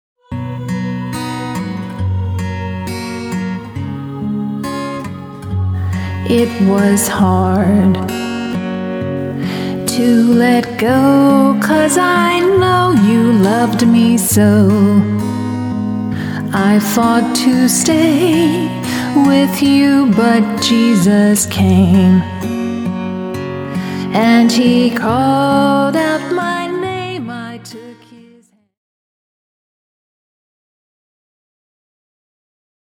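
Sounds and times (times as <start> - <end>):
woman singing: 0.2 - 8.7, 9.3 - 22.6, 23.8 - 28.6.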